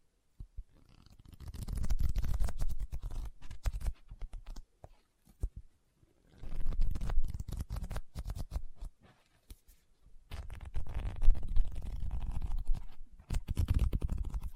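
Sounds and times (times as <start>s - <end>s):
tapping and scratching on a book: 0.9s - 5.6s, 6.4s - 9.6s, 10.3s - 14.5s.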